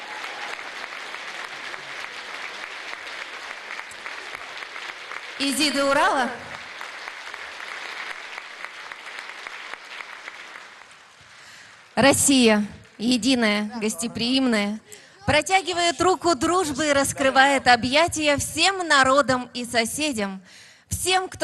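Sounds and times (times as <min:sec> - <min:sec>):
audience applause: 0:00.0 - 0:12.1
speech: 0:05.4 - 0:06.4, 0:12.0 - 0:21.4.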